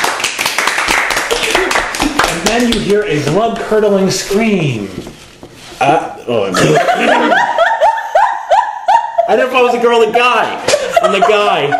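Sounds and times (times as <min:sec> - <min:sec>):
applause: 0:00.0 - 0:02.9
speech: 0:02.4 - 0:07.5, 0:09.3 - 0:11.7
laughter: 0:06.4 - 0:11.7.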